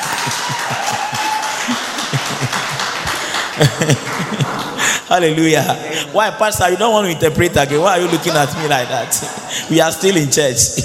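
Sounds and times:
audience clapping: 0.0 - 5.3, 7.2 - 10.3
laughter: 0.0 - 10.8
speech: 3.6 - 10.8
faint crowd voices: 4.6 - 10.8.

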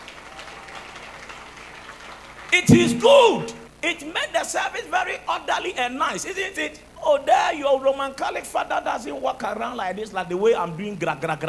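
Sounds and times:
crowd clapping: 0.0 - 3.7
speech: 2.6 - 11.4.

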